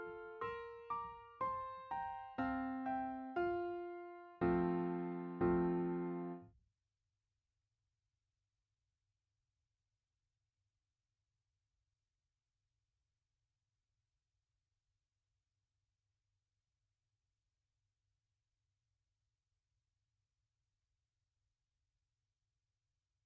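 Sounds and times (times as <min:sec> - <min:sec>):
lullaby for voice and piano: 0:00.0 - 0:06.4.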